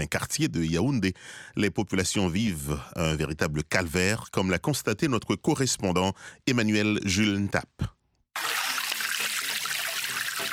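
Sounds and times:
speech: 0.0s - 8.0s
spring water trickling from a developed natural spring in Cameroon: 8.4s - 10.5s.

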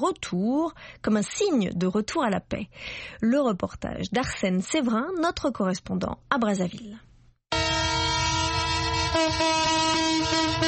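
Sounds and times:
speech: 0.0s - 7.1s, 9.1s - 10.6s
freight train horn blast on arrival: 7.5s - 10.6s.

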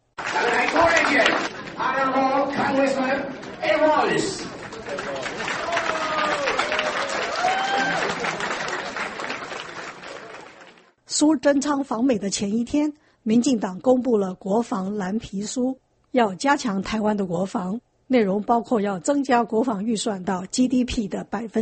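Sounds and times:
DPP supporters clapping: 0.0s - 11.0s
speech: 1.1s - 5.7s, 11.2s - 21.5s.

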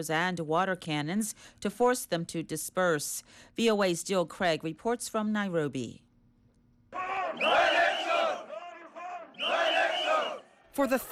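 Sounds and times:
speech: 0.0s - 6.0s, 7.4s - 7.8s, 10.8s - 11.1s
protesters chanting in the street: 7.0s - 10.6s.

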